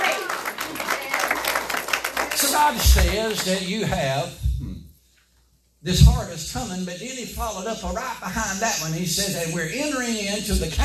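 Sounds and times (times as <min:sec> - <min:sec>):
audience clapping hands: 0:00.0 - 0:04.0
speech: 0:02.6 - 0:04.4, 0:05.8 - 0:10.8.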